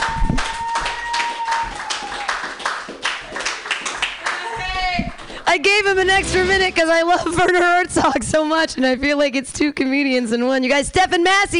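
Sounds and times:
audience applause for the host of a comedy open mic: 0.0s - 6.0s
speech: 5.6s - 11.5s.

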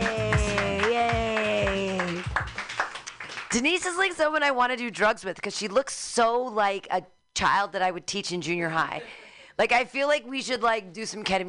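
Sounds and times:
audience clapping hands: 0.0s - 3.9s
speech: 3.6s - 11.4s.

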